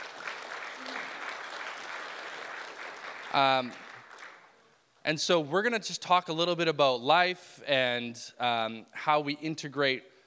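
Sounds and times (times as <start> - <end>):
audience applause: 0.0 - 4.5
speech: 3.3 - 3.9, 5.0 - 10.1.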